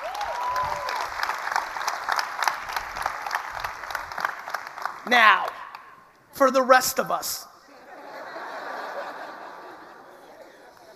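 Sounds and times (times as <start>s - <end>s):
audience applause: 0.0s - 5.6s
speech: 5.1s - 5.5s, 6.4s - 7.5s
laughter: 7.7s - 10.9s.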